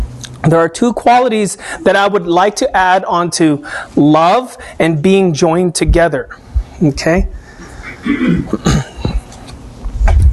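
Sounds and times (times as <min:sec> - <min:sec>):
speech: 0:00.5 - 0:07.4, 0:08.0 - 0:08.9
person coughing: 0:07.9 - 0:09.2.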